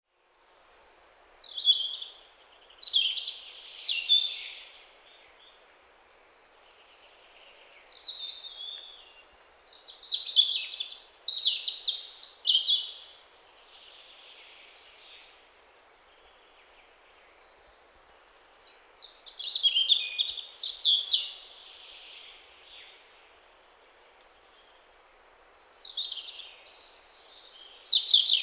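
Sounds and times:
European robin song: 1.4 - 5.6, 6.7 - 15.4, 18.6 - 23.2, 25.6 - 28.4.

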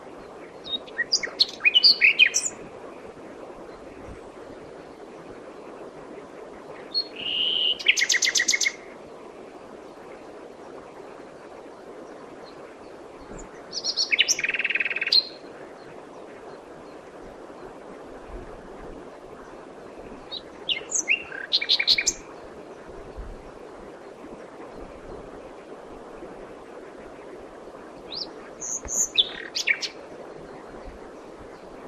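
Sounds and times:
hiss: 0.0 - 31.8
common nightingale singing: 0.6 - 2.6, 6.9 - 8.8, 13.4 - 15.4, 20.3 - 22.3, 28.1 - 30.0.

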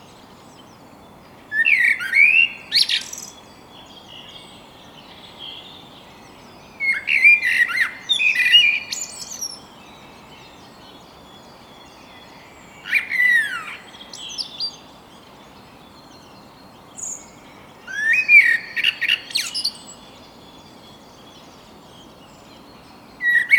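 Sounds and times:
common blackbird song: 1.4 - 23.5.

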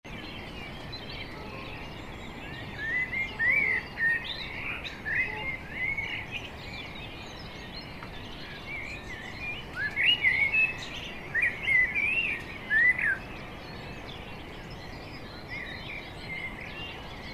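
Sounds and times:
common blackbird singing: 0.1 - 17.3.

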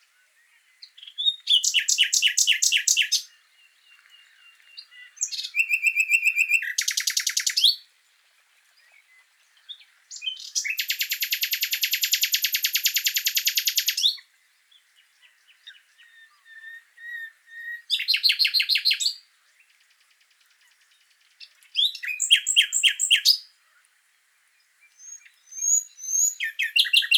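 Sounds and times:
common nightingale song: 0.0 - 27.1.

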